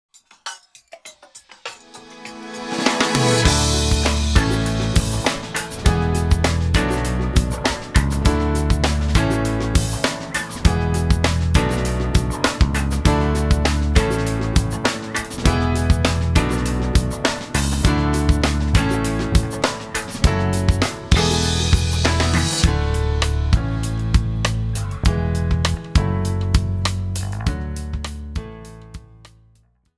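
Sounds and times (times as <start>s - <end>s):
instrumental music: 0.1s - 29.6s.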